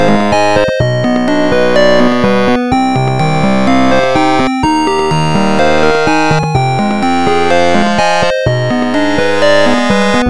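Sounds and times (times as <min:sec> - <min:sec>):
8bit melody: 0:00.0 - 0:10.2.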